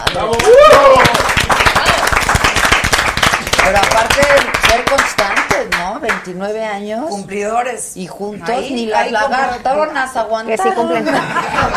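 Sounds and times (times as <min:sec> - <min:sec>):
applause: 0:00.0 - 0:06.2
speech: 0:00.1 - 0:01.2, 0:03.7 - 0:11.7
laughter: 0:10.8 - 0:11.7.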